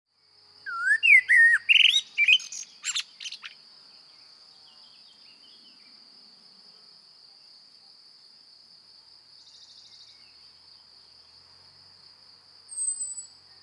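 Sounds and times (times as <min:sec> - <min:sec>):
common blackbird Turdus merula singing: 0:00.7 - 0:03.6.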